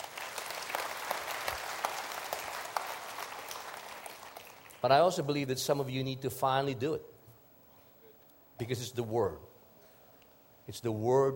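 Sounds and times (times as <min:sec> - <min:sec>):
audience applause: 0:00.0 - 0:04.8
speech: 0:04.8 - 0:07.1, 0:08.6 - 0:09.5, 0:10.7 - 0:11.3.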